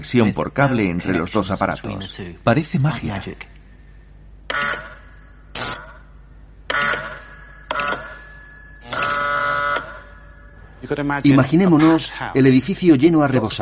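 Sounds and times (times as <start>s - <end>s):
speech: 0.0s - 3.5s, 10.9s - 13.6s
bell ringing on radio receiver: 4.6s - 5.5s, 6.7s - 11.6s.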